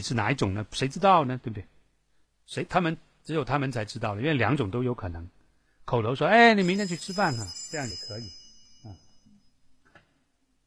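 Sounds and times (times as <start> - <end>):
speech: 0.0 - 1.8, 2.5 - 9.0
phone ringing: 6.6 - 9.4.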